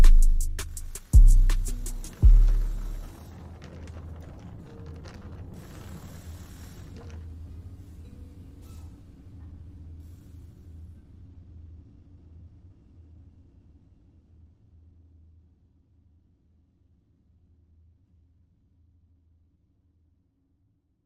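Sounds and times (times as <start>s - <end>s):
deep bass: 0.0s - 3.1s.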